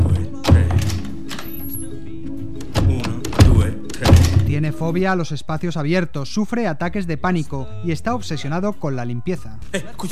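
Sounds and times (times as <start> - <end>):
door latch being moved: 0.0 - 1.7, 2.6 - 4.6
speech: 4.6 - 10.1.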